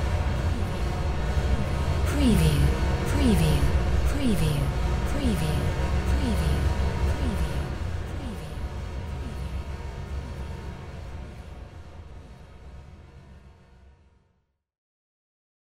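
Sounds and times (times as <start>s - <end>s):
generated brass drone: 0.0s - 11.6s.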